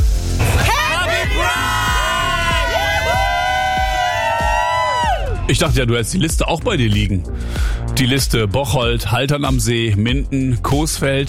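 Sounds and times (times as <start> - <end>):
crowd at a Pride event cheering and shouting Happy Pride: 0.4 - 5.8
speech: 5.5 - 11.2.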